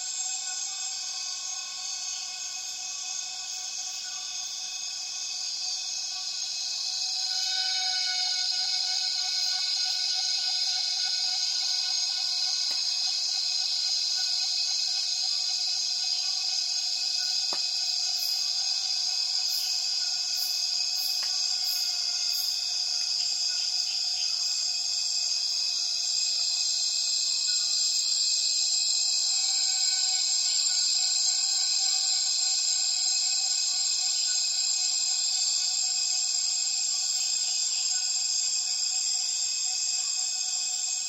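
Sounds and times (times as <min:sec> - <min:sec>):
myriad cicadas calling at dusk in Tawau Hills NP Borneo: 0:00.0 - 0:41.0.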